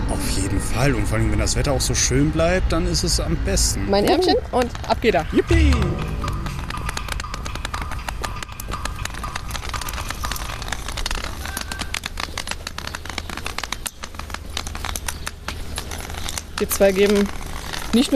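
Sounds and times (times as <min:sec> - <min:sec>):
speech: 0:00.5 - 0:06.2, 0:16.7 - 0:18.1
walking stick tapping while walking in Dresden: 0:04.4 - 0:18.1.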